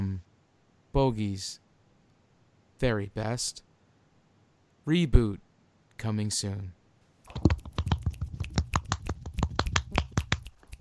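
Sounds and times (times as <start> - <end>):
speech: 1.0 - 1.6, 2.8 - 3.7, 4.8 - 5.4, 6.0 - 6.8
finger snap: 7.3 - 10.8
hand clap: 7.3 - 10.8.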